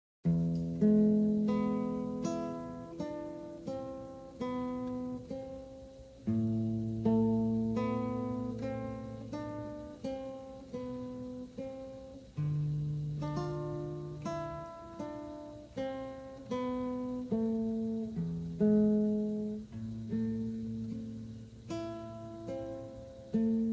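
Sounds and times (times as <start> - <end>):
guitar improvisations: 0.2 - 23.7.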